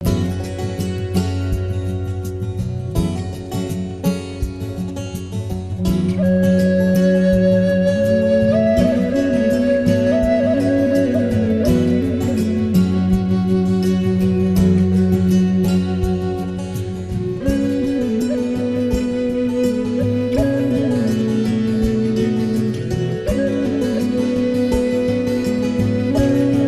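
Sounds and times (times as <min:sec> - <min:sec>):
flute: 0:00.0 - 0:26.6.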